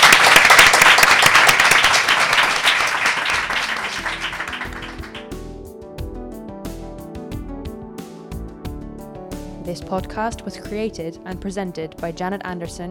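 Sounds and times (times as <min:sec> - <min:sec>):
crowd applauding: 0:00.0 - 0:05.4
speech: 0:09.8 - 0:12.8.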